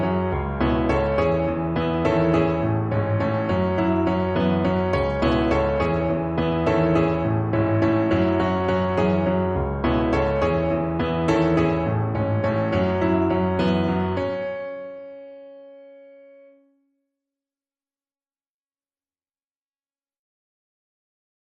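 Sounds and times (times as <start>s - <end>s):
piano piece: 0.0s - 16.6s.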